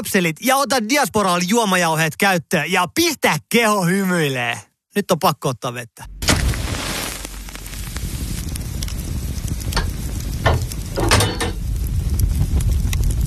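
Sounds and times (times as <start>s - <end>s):
speech: 0.0s - 6.1s
sausage sizzling on a sauna stove: 6.4s - 13.2s.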